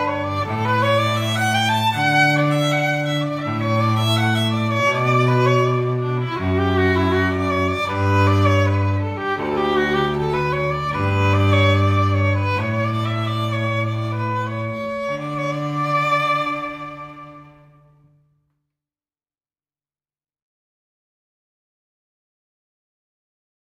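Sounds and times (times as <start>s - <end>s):
duo playing classical piece: 0.0s - 18.0s.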